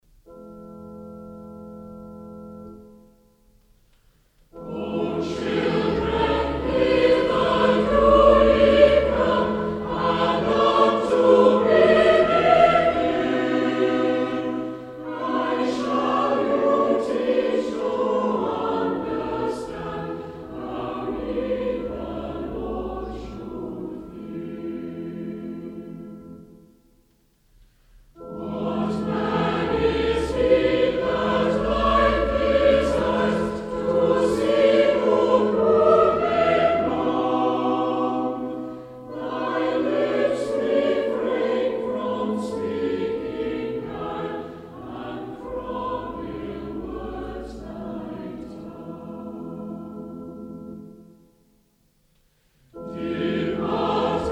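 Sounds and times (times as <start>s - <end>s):
christmas carol singing: 0.0s - 54.3s.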